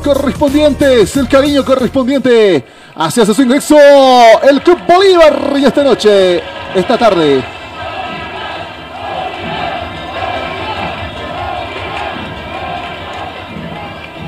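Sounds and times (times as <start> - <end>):
speech: 0.1 - 7.6
football fans chanting the team's name: 6.4 - 14.2.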